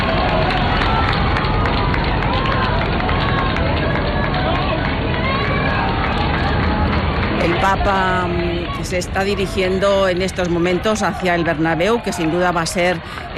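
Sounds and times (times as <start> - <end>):
crowd in a street in Spain awaiting a papal motorcade: 0.0 - 13.3
speech: 7.7 - 13.3.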